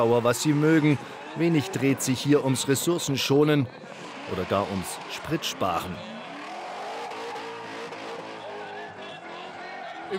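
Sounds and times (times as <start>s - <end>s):
speech: 0.0s - 6.2s
crowd noise: 0.0s - 10.1s
drifting cars revving engines at motor show: 0.0s - 10.1s
tire squeal: 0.0s - 10.1s.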